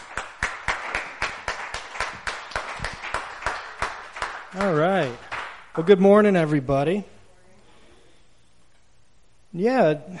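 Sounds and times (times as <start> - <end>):
audience clapping in rhythm: 0.0 - 5.9
speech: 4.5 - 7.1, 9.5 - 10.1.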